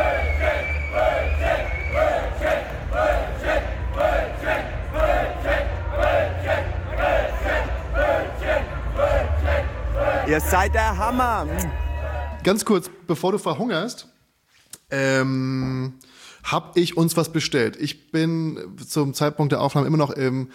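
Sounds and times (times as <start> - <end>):
large festival crowd chanting a short word: 0.0 - 12.4
speech: 10.3 - 11.8, 12.4 - 14.1, 14.9 - 20.5.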